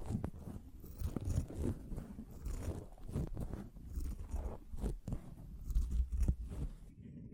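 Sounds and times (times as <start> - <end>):
sponge rubbed and squished: 0.0 - 6.9.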